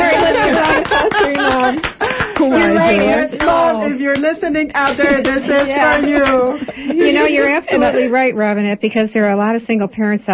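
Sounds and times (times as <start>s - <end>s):
round of applause: 0.0s - 3.6s
laughter: 0.0s - 3.8s, 4.8s - 8.2s
speech: 4.3s - 10.3s.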